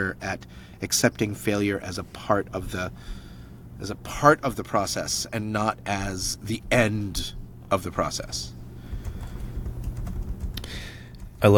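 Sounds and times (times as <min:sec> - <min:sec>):
speech: 0:00.0 - 0:03.2, 0:03.8 - 0:08.6, 0:11.4 - 0:11.5
keyboard typing as a note is written down: 0:08.9 - 0:11.5.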